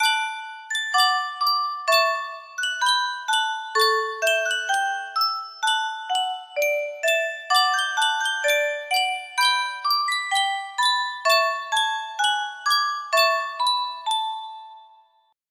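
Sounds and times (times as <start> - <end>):
yunsheng music box: 0.0 - 15.4.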